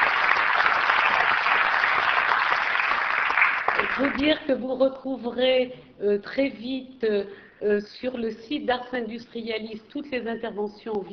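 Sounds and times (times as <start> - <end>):
audience applause: 0.0 - 4.2
speech: 4.0 - 11.1.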